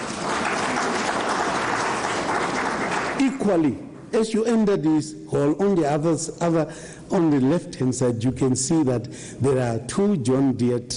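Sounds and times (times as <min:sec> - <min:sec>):
crowd applauding: 0:00.0 - 0:03.5
speech: 0:03.2 - 0:10.9.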